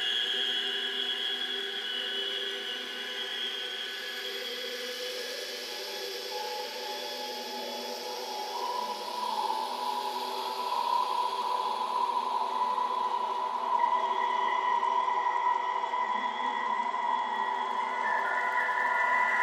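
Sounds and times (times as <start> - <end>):
mystical science fiction ambience: 0.0 - 19.4.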